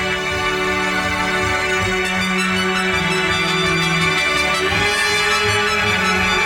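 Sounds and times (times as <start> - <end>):
strings-only orchestral reprise with sustained bowed chords: 0.0 - 6.4.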